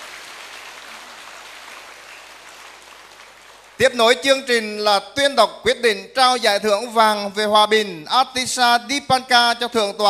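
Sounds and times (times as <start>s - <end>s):
audience applause at a Buddhist pagoda award ceremony: 0.0s - 3.8s
speech: 3.8s - 10.0s.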